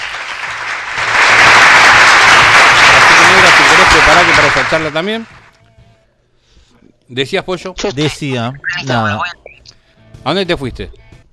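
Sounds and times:
applause sound effect played by operator: 0.0 - 5.5
speech: 4.7 - 5.4, 7.1 - 9.4, 10.2 - 11.0.

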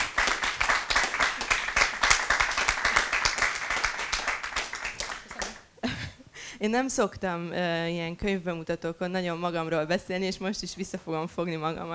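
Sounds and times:
audience applause: 0.0 - 5.7
speech: 6.6 - 11.9.

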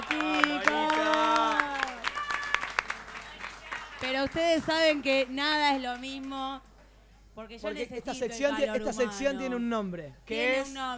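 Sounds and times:
audience applause: 0.0 - 5.6
speech: 4.3 - 6.7, 7.4 - 10.9.

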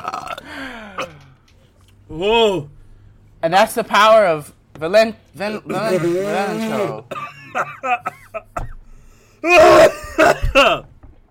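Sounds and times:
person coughing: 0.0 - 1.2, 5.8 - 10.9
speech: 2.2 - 2.7, 3.4 - 8.5, 9.4 - 10.9.

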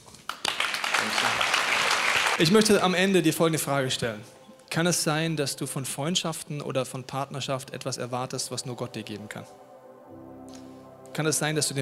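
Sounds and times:
audience applause: 0.3 - 2.8
speech: 2.4 - 9.6, 11.2 - 11.8.

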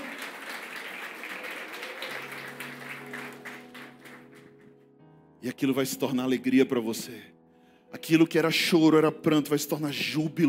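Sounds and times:
audience applauding: 0.0 - 4.8
speech: 5.4 - 7.4, 8.0 - 10.4.

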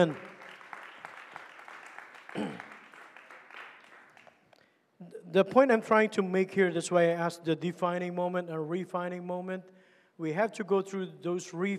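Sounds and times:
speech: 0.0 - 0.3, 2.4 - 2.7, 5.0 - 11.7
audience clapping hands: 0.0 - 4.7.

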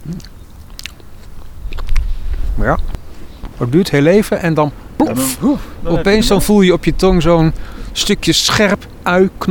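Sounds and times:
biting and chewing a fresh wild garlic flower: 0.0 - 3.6
speech: 0.1 - 0.4, 2.6 - 3.0, 3.6 - 9.5.

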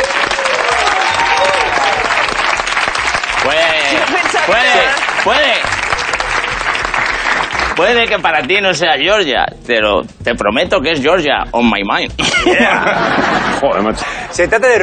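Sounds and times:
audience whoops and cheers: 0.0 - 2.4
audience applauding: 0.0 - 8.6
speech: 4.5 - 5.8, 7.8 - 14.8
laughter: 5.8 - 7.6, 12.2 - 14.8.

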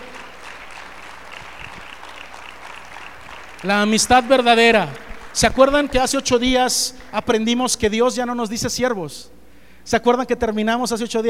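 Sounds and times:
audience clapping loudly: 0.0 - 7.9
speech: 3.6 - 11.2.

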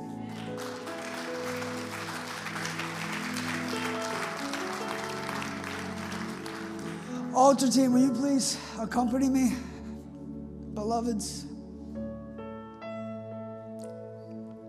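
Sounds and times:
audience applause: 0.0 - 7.8
sustained keyboard or organ chords: 0.0 - 12.5
speech: 7.4 - 9.7, 10.9 - 11.5.

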